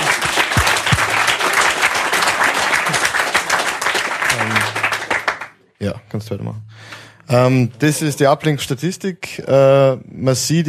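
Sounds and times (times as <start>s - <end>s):
audience applause: 0.0s - 5.6s
speech: 6.2s - 10.6s.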